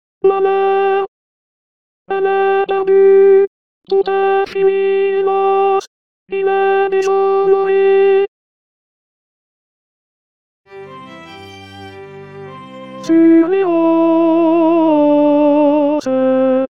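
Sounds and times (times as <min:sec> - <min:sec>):
tenor singing: 0:02.1 - 0:08.3, 0:10.7 - 0:16.7.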